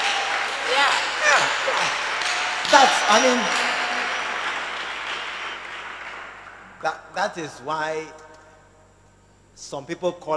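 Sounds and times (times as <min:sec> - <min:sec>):
audience clapping: 0:00.0 - 0:07.1
speech: 0:02.7 - 0:03.6, 0:06.8 - 0:08.2, 0:09.6 - 0:10.3.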